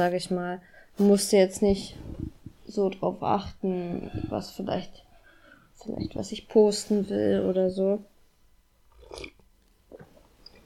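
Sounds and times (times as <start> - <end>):
speech: 0.0 - 5.0, 5.8 - 8.1, 9.1 - 9.4
person sipping tea and swallowing: 8.9 - 10.6.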